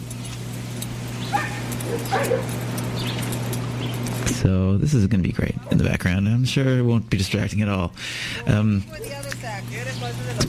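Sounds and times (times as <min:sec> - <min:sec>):
Costa Rican dogs barking: 0:01.1 - 0:04.1, 0:08.9 - 0:09.3
speech: 0:01.9 - 0:02.7, 0:04.4 - 0:10.4.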